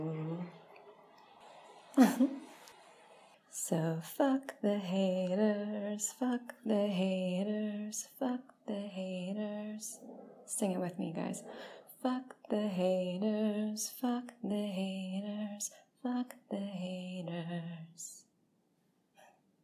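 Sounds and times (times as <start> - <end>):
person singing a cappella: 0.0 - 0.8, 3.5 - 18.3.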